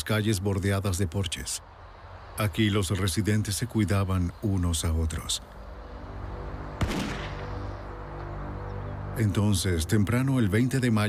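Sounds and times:
speech: 0.1 - 1.8, 2.4 - 5.6, 9.2 - 11.0
single gunshot: 6.8 - 7.5.

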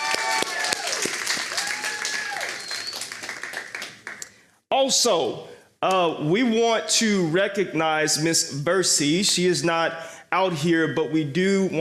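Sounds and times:
audience applause: 0.0 - 4.2
speech: 4.9 - 11.7.

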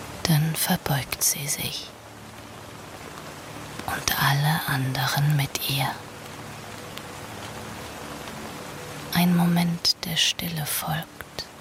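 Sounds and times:
rain falling steadily: 0.0 - 11.5
speech: 0.3 - 2.0, 3.9 - 6.1, 9.2 - 11.2.

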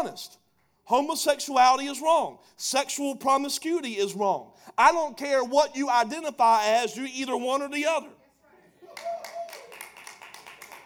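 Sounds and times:
speech: 0.1 - 8.2
audience clapping: 8.8 - 10.8.

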